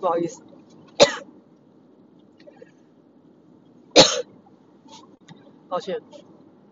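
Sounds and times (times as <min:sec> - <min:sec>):
speech: 0:00.0 - 0:00.5, 0:05.7 - 0:06.3
low steady hum: 0:00.0 - 0:06.7
person coughing after choking on own saliva while driving a car: 0:01.0 - 0:01.2, 0:04.0 - 0:04.3.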